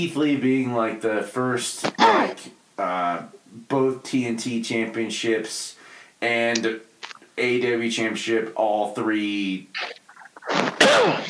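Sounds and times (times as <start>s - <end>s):
speech: 0.0s - 10.0s
faint murmurs: 0.0s - 11.2s
person sneezing: 1.8s - 2.5s, 9.8s - 11.2s.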